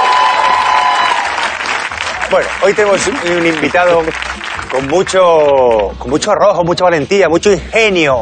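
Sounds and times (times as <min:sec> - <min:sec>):
crowd applauding: 0:00.0 - 0:05.9
speech: 0:02.3 - 0:08.1.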